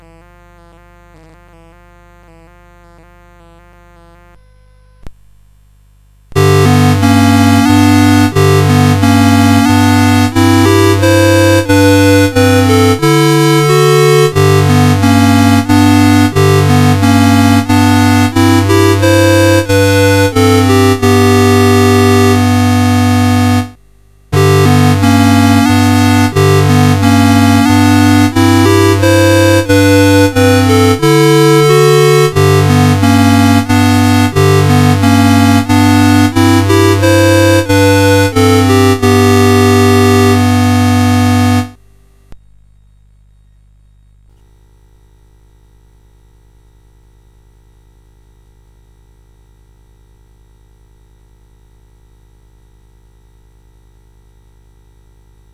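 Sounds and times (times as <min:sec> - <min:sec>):
lullaby on CSG8580R5 chip: 0:06.3 - 0:42.4.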